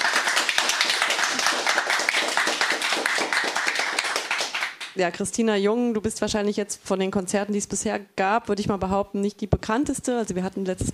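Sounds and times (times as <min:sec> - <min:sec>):
studio audience clapping: 0:00.0 - 0:05.0
speech: 0:05.0 - 0:10.9.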